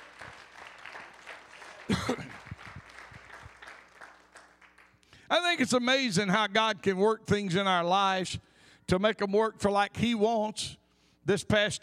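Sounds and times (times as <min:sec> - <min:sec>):
audience hand clapping: 0:00.0 - 0:05.2
speech: 0:05.3 - 0:11.8.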